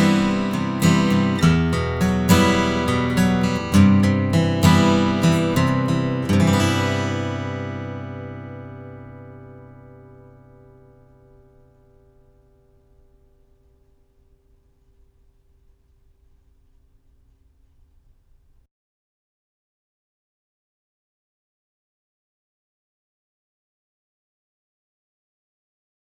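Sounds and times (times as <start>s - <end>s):
standard guitar: 0.0s - 15.5s.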